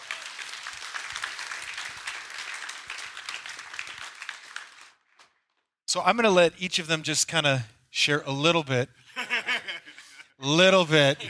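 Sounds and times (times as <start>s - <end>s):
audience clapping: 0.0s - 5.5s
speech: 6.0s - 9.0s, 10.4s - 11.2s
laughter: 9.1s - 11.2s.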